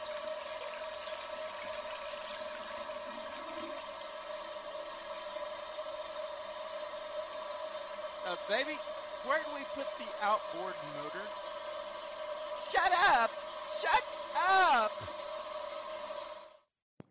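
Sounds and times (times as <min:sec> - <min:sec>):
toilet flushing: 0:00.0 - 0:16.6
faint humming tone: 0:00.0 - 0:16.7
speech: 0:08.3 - 0:11.5, 0:12.7 - 0:15.2.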